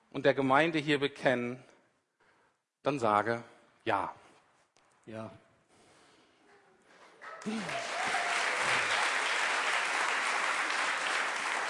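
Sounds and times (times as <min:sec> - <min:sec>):
speech: 0:00.2 - 0:01.7, 0:02.8 - 0:04.2, 0:05.1 - 0:05.4, 0:07.4 - 0:08.0
audience applause: 0:07.2 - 0:11.6.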